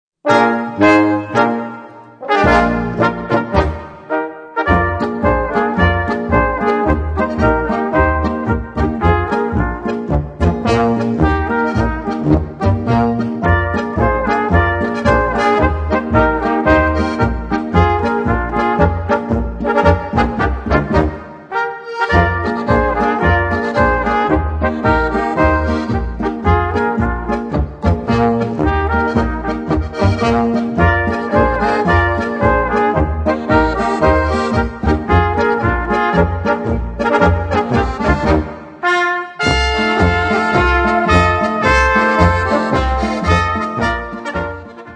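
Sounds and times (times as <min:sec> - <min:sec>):
polka music: 0:00.2 - 0:44.9.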